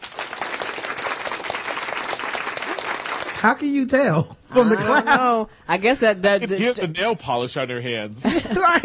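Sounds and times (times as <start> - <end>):
studio audience applause sound effect: 0.0 - 3.9
speech: 3.4 - 8.8.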